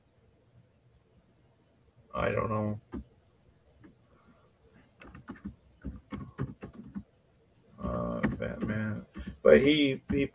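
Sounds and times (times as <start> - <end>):
speech: 2.2 - 3.0, 8.6 - 10.3
typing on a keyboard: 5.0 - 7.1, 7.8 - 9.4.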